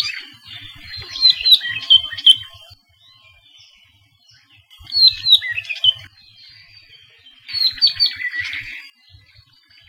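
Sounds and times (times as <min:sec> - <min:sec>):
apapane long call: 0:00.0 - 0:02.8, 0:04.8 - 0:09.8.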